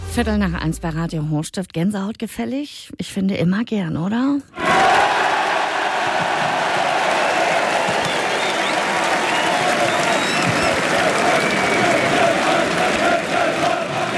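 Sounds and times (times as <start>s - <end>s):
speech: 0.1s - 4.9s
crowd of football fans cheering for the coach: 4.5s - 14.1s.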